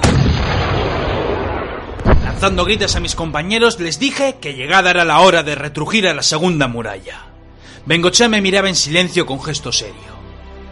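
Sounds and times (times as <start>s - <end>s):
gunshot: 0.0s - 3.1s
speech: 2.4s - 10.2s.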